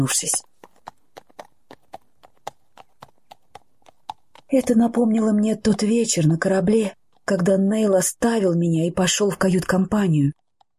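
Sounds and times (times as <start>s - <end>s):
speech: 0.0s - 0.5s, 4.5s - 10.4s
horses galloping away, hooves clip-clopping: 0.0s - 8.0s.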